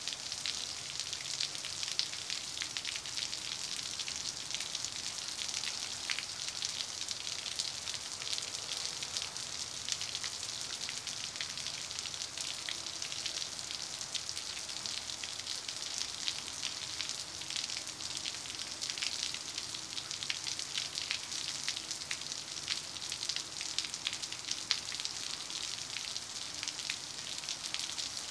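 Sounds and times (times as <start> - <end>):
medium to light rain splattering on cement during storm: 0.0 - 28.2.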